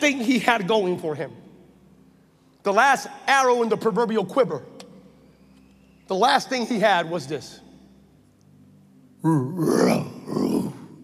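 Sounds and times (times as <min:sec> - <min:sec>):
speech: 0:00.0 - 0:01.4, 0:02.6 - 0:04.8, 0:06.1 - 0:07.6, 0:09.2 - 0:10.1
lion's broken roar: 0:09.4 - 0:11.0.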